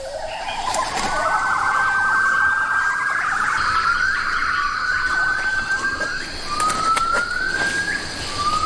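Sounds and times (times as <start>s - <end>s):
Hainan gibbons calling at dawn in the Bawangling rainforest: 0.0s - 8.6s
hiss: 0.0s - 8.6s.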